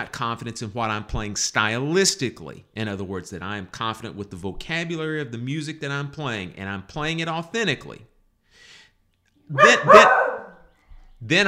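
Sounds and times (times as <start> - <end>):
speech: 0.0 - 8.1, 9.5 - 10.3, 11.2 - 11.4
schnauzer barking: 9.5 - 10.7.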